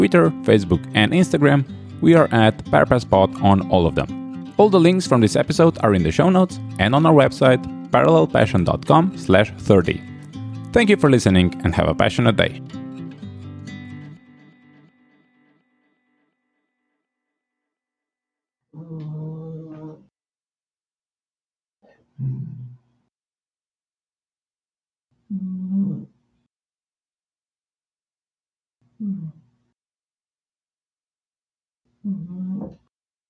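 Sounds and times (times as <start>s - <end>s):
speech: 0.0s - 10.1s, 10.7s - 12.8s
cat snoring: 25.3s - 26.1s, 29.0s - 29.5s, 32.0s - 32.8s.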